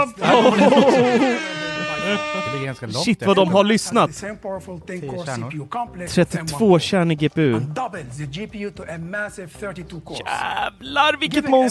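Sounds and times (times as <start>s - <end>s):
laughter: 0.0s - 2.8s
speech: 0.0s - 11.6s
air horn blaring: 0.6s - 3.1s.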